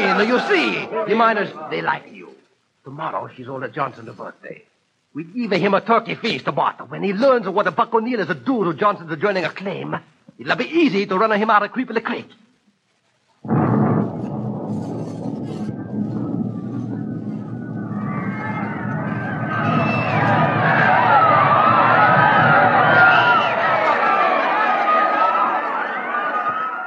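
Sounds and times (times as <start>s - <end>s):
frantic crowd: 0.0s - 1.8s, 15.0s - 26.8s
speech: 0.2s - 2.2s, 2.8s - 12.4s, 13.4s - 13.6s
explosion: 13.4s - 24.1s.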